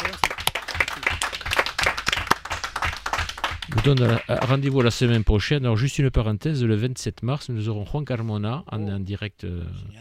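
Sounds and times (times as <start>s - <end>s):
audience applauding: 0.0s - 5.3s
speech: 3.8s - 9.9s.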